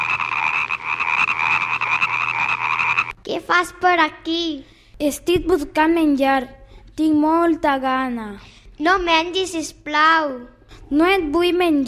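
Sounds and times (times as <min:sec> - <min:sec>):
frogs croaking: 0:00.0 - 0:03.2
speech: 0:03.3 - 0:11.8.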